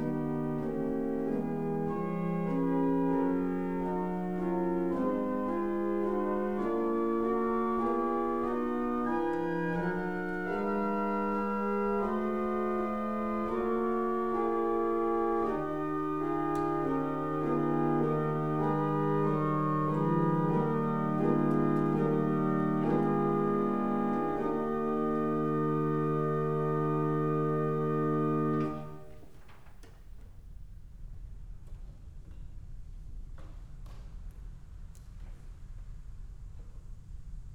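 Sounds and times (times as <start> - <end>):
organ chorale prelude: 0.0 - 29.5.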